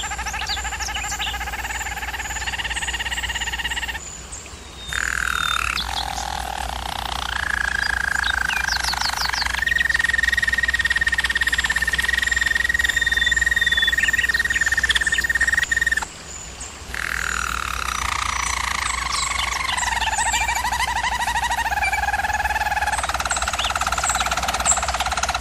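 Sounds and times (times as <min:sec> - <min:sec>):
German Roller canary song: 0:00.0 - 0:25.3.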